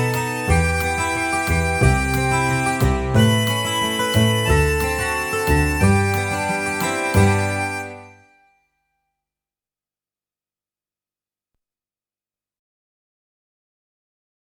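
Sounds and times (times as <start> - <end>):
folk song: 0.0 - 8.2.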